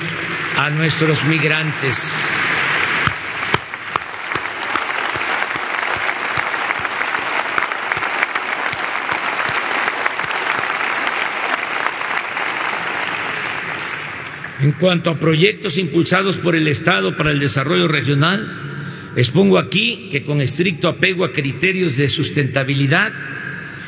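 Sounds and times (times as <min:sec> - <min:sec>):
audience applause: 0:00.0 - 0:14.6
speech: 0:00.6 - 0:02.5, 0:14.6 - 0:23.5.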